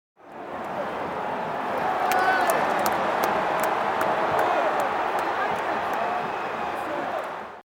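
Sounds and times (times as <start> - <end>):
stadium crowd atmosphere: 0.2 - 7.6.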